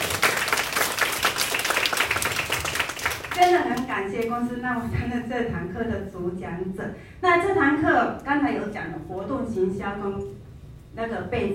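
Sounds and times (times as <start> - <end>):
audience applause: 0.0 - 3.6
speech: 3.7 - 11.5.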